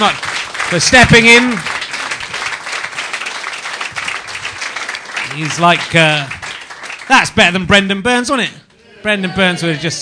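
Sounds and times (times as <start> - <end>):
speech: 0.0 - 1.8, 5.4 - 6.4, 7.1 - 10.0
audience applause: 0.0 - 7.5.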